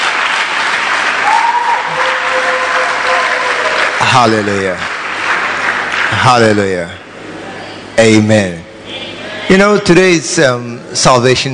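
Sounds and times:
audience clapping and applauding: 0.0 - 7.0
speech: 4.1 - 5.0, 6.1 - 7.0, 8.0 - 8.6, 9.5 - 11.5.

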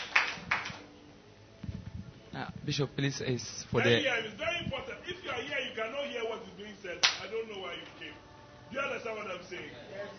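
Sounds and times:
clapping: 0.0 - 0.9, 7.0 - 7.3
speech: 2.4 - 10.1.

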